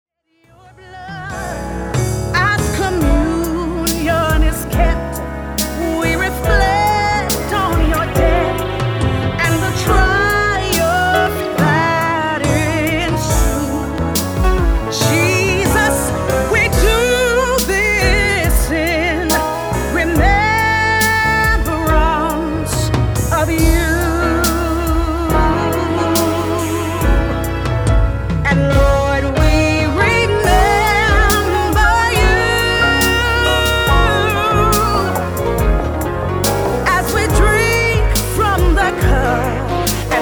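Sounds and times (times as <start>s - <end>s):
soprano singing: 0.4s - 40.2s.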